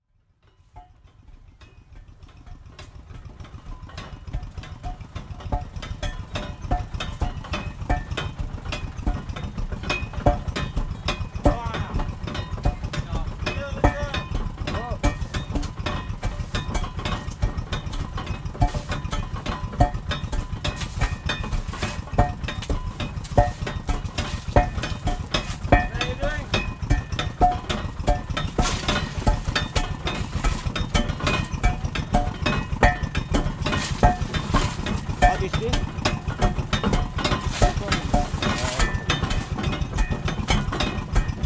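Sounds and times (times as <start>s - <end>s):
stone breaker in Indonesia: 5.6s - 41.4s.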